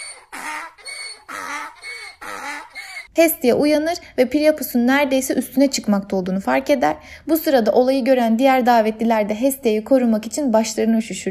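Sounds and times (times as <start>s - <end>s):
donkey braying loudly: 0.0s - 3.1s
speech: 3.2s - 11.3s.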